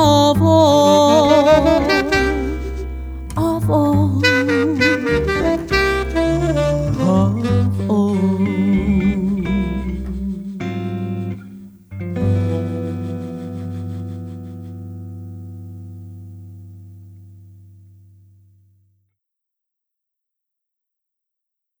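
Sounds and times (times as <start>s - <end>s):
Latin jazz band playing: 0.8s - 15.4s.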